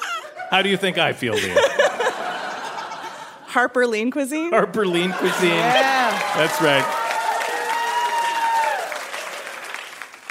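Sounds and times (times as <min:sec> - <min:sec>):
laughter: 0:00.0 - 0:03.5, 0:04.9 - 0:06.9
speech: 0:00.5 - 0:01.9, 0:03.6 - 0:07.0
audience applause: 0:05.0 - 0:10.2.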